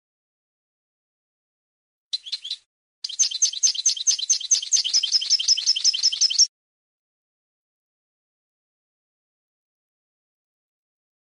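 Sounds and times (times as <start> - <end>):
European goldfinch chirping: 2.1 - 6.5.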